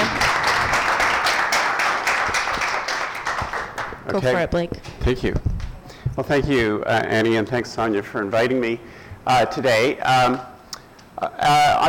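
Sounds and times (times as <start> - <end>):
audience applause: 0.0 - 4.1
speech: 4.1 - 5.5, 6.2 - 10.5, 11.2 - 11.8.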